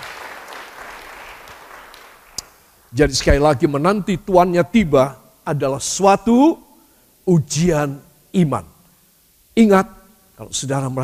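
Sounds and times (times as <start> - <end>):
crowd clapping: 0.0 - 3.0
speech: 2.9 - 6.6, 7.2 - 8.7, 9.6 - 11.0.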